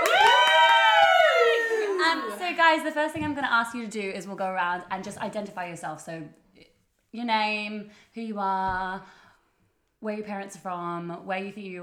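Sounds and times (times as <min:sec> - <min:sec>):
scattered clapping: 0:00.0 - 0:02.0
live studio audience cheering: 0:00.0 - 0:02.6
speech: 0:02.7 - 0:06.4, 0:07.1 - 0:09.2, 0:10.0 - 0:11.8.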